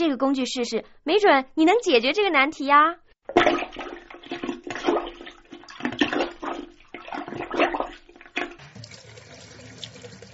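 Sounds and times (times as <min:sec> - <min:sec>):
speech: 0:00.0 - 0:03.6
bathtub draining after being unclogged with a plunger: 0:03.3 - 0:10.3.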